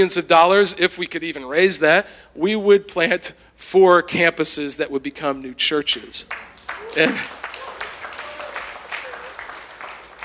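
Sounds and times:
speech: 0:00.0 - 0:07.4
audience applause: 0:06.3 - 0:10.2.

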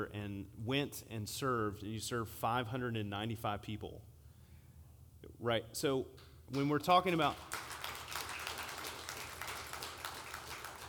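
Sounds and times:
speech: 0:00.0 - 0:04.1, 0:05.3 - 0:07.6
church congregation clapping for volunteers who served a community meal: 0:06.5 - 0:10.8.

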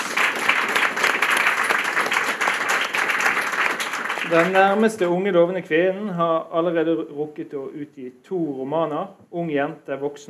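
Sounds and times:
audience applause: 0:00.0 - 0:05.1
speech: 0:04.3 - 0:10.2.

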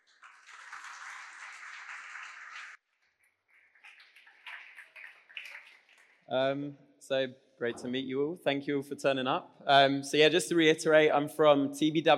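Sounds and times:
audience applauding a speaker at a typography design talk: 0:00.0 - 0:02.8, 0:03.6 - 0:06.2
speech: 0:06.3 - 0:12.1.

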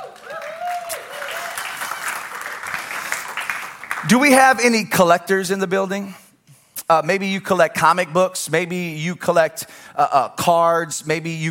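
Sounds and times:
audience applause: 0:00.0 - 0:04.1
speech: 0:04.0 - 0:06.2, 0:06.9 - 0:11.5.

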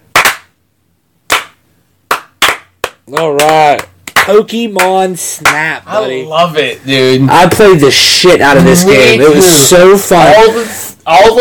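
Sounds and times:
slow clapping: 0:00.1 - 0:00.5, 0:01.3 - 0:05.6
speech: 0:03.1 - 0:11.4.

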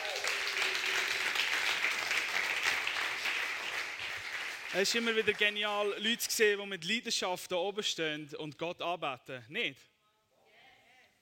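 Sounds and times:
audience applause for the band: 0:00.0 - 0:05.7
speech: 0:04.7 - 0:09.9.

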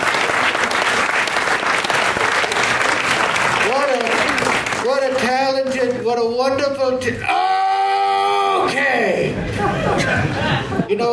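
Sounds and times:
audience applause: 0:00.0 - 0:05.3
speech: 0:05.3 - 0:07.4, 0:08.6 - 0:11.1
laughter: 0:09.1 - 0:11.0.

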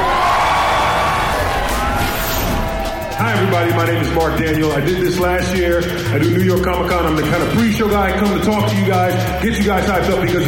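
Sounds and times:
large crowd cheering and shouting: 0:00.0 - 0:04.9
speech: 0:03.5 - 0:10.4.

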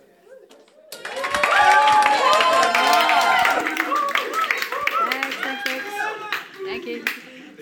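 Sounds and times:
audience clapping: 0:00.7 - 0:07.4.

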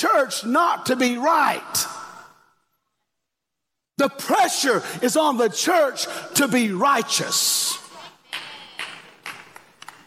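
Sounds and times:
speech: 0:00.0 - 0:02.0, 0:04.0 - 0:07.8
hand claps: 0:08.3 - 0:10.0.

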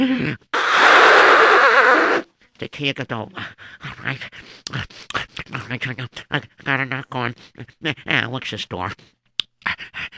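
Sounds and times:
person blowing a runny nose: 0:00.1 - 0:02.3
speech: 0:02.6 - 0:10.1.

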